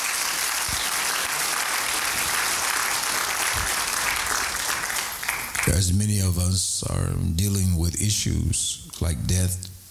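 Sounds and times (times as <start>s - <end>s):
audience clapping hands: 0.0s - 6.0s
speech: 5.8s - 9.7s.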